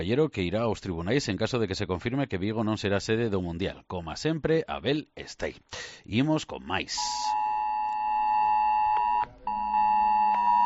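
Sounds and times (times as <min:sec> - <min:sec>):
speech: 0:00.0 - 0:07.4
mobile phone emergency alert tone in the Coruña area drill: 0:07.0 - 0:10.6.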